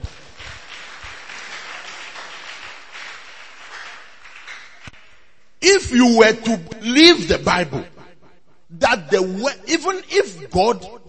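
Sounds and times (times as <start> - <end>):
audience clapping: 0.0 - 5.5
speech: 5.6 - 8.0, 9.1 - 11.0.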